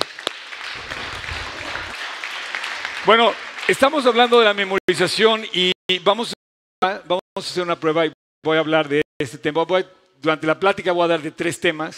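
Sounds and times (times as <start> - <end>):
audience applause: 0.0 - 4.8
speech: 3.1 - 11.9.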